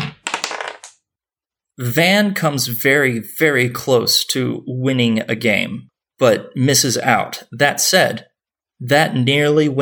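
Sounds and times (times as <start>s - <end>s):
dice being rolled: 0.2s - 1.0s
speech: 1.8s - 9.8s.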